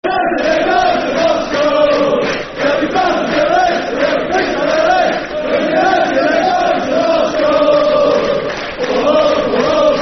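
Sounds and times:
football crowd chanting: 0:00.0 - 0:10.0.

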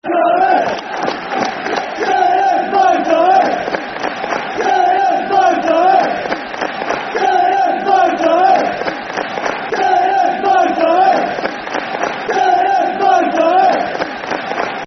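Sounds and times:
football crowd chanting soccer songs: 0:00.0 - 0:14.8.

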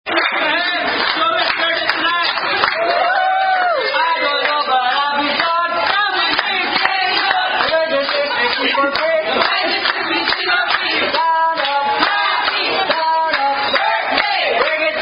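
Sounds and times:
birthday tune: 0:00.1 - 0:15.0.

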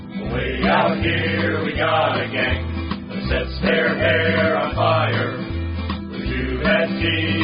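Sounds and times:
choir singing: 0:00.2 - 0:05.5, 0:06.2 - 0:07.4.

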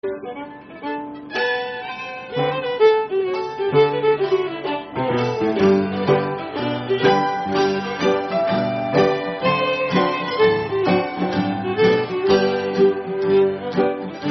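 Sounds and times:
schottische dance music: 0:00.0 - 0:14.2.

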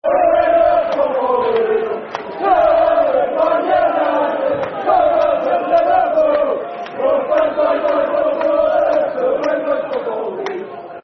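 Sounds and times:
football chant: 0:00.0 - 0:11.0.

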